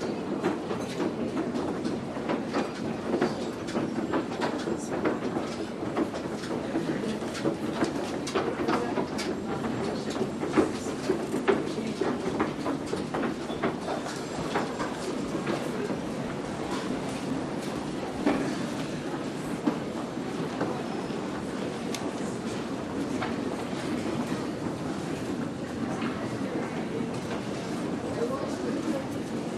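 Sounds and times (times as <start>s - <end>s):
crowds in department store: 0.0s - 29.5s.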